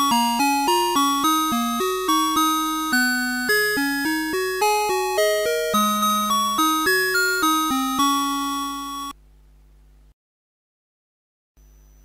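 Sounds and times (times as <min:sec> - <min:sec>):
A chord: 0:00.0 - 0:09.2.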